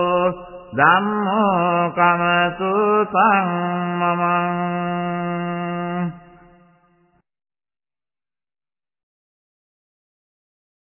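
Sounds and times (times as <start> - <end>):
Buddhist chanting: 0.0 - 6.5.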